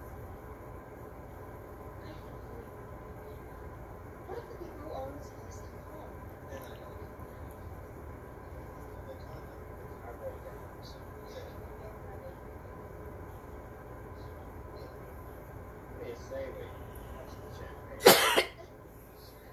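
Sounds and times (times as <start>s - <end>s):
low hum: 0.0s - 19.5s
person coughing from something stuck in the back of the throat: 18.0s - 18.6s.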